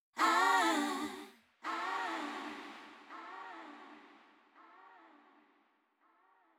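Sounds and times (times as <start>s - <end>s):
choir singing: 0.2s - 4.0s.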